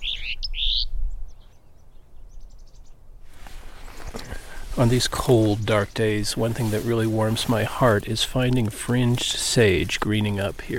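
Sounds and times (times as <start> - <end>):
house finch song: 0.0 - 10.7
steady broadband noise: 3.3 - 10.7
speech: 4.8 - 10.7.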